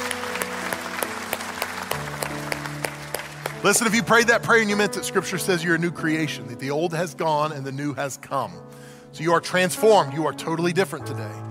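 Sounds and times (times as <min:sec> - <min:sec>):
audience applause: 0:00.0 - 0:04.4
speech: 0:03.6 - 0:11.4.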